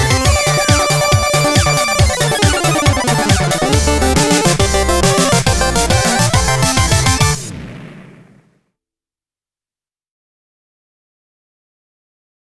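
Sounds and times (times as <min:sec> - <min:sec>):
fanfare synthesizer remix: 0:00.0 - 0:08.0.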